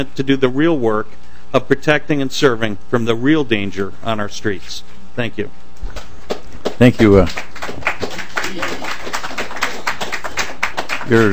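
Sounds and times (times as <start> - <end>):
speech: 0.0 - 6.0, 6.8 - 7.5, 11.1 - 11.3
applause: 6.3 - 11.3.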